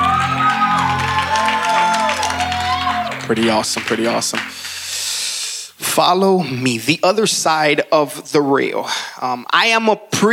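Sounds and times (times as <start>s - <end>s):
audience golf clap: 0.0s - 4.8s
speech: 3.3s - 4.7s, 6.0s - 10.3s.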